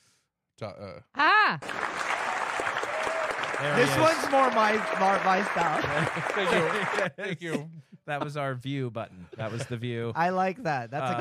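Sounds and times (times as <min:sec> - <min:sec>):
speech: 0:00.6 - 0:11.1
canned applause sound effect: 0:01.6 - 0:07.5
whooping cheers in canned applause sound effect: 0:02.2 - 0:07.1
laughter: 0:03.6 - 0:11.1.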